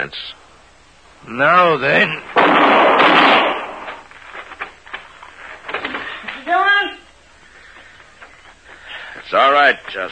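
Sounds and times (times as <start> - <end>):
speech: 0.0 - 0.4, 1.2 - 3.6, 9.3 - 10.1
gunshots in a radio western quick-draw duel: 2.3 - 4.1.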